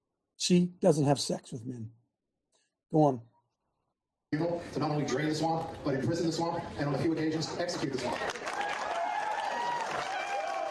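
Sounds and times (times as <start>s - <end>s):
speech: 0.4s - 2.0s, 2.9s - 3.3s, 4.3s - 8.5s
crowd cheering: 7.7s - 10.7s.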